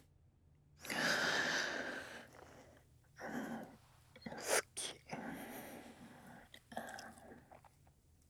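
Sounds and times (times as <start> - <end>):
sleep breathing: 0.9 - 7.2.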